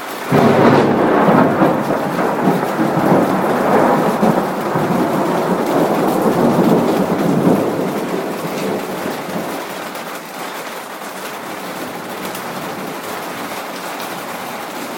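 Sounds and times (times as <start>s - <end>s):
rain: 0.0s - 14.9s
thunder: 0.3s - 9.7s.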